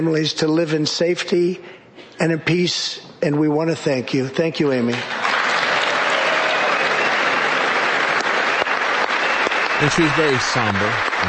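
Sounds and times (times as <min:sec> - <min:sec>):
speech: 0:00.0 - 0:05.2, 0:09.8 - 0:11.2
audience applauding: 0:05.0 - 0:11.2.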